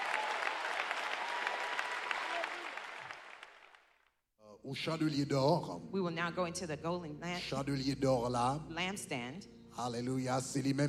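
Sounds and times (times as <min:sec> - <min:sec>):
audience applauding: 0:00.0 - 0:04.0
speech: 0:04.6 - 0:10.8.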